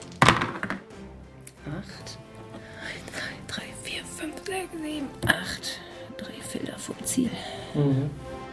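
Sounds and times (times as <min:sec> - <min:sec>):
dice rolling: 0:00.0 - 0:00.9
speech: 0:01.7 - 0:02.2, 0:04.2 - 0:08.3.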